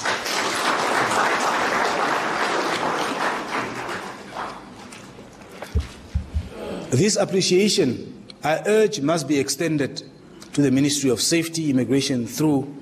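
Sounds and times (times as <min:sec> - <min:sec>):
audience applause: 0:00.0 - 0:04.8
speech: 0:06.9 - 0:12.7.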